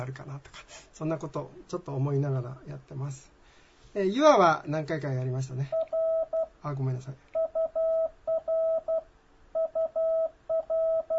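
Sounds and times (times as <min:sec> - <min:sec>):
speech: 0:00.0 - 0:05.8, 0:06.6 - 0:07.3
Morse code tones: 0:05.7 - 0:06.5, 0:07.4 - 0:09.0, 0:09.6 - 0:11.1.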